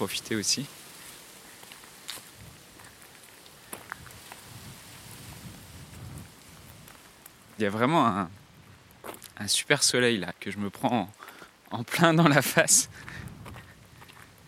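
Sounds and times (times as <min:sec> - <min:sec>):
speech: 0:00.0 - 0:00.8, 0:07.6 - 0:08.4, 0:09.4 - 0:13.3
wind blowing through trees rustling leaves: 0:00.0 - 0:14.4.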